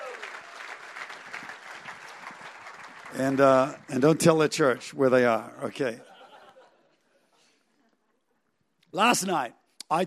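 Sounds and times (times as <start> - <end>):
church congregation applauding visiting pastors: 0.0 - 5.0
speech: 3.1 - 6.1, 8.9 - 10.0
laughter: 5.9 - 8.1.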